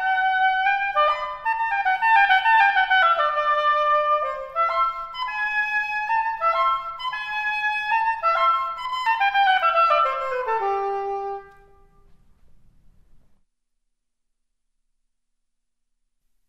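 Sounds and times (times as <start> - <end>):
oboe: 0.0 - 12.2.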